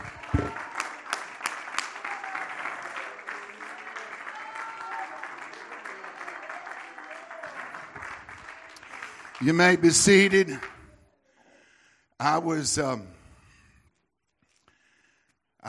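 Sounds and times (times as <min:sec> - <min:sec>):
audience clapping hands: 0:00.0 - 0:11.0
speech: 0:09.4 - 0:10.7, 0:12.2 - 0:13.2.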